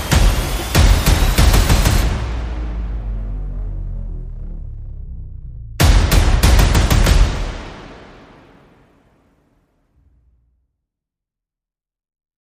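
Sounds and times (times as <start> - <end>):
percussion: 0.0 - 3.4, 5.8 - 8.0
sound effects: 0.0 - 9.4.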